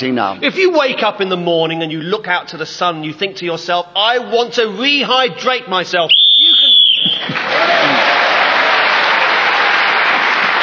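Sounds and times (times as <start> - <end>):
speech: 0.0 - 8.2
whistle blown to end the round: 6.1 - 7.4
audience applause and cheering: 6.6 - 10.6.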